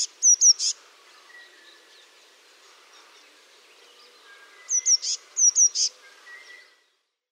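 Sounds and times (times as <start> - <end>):
soft bird calls: 0.0 - 7.1
Eurasian blue tit song: 0.0 - 7.2.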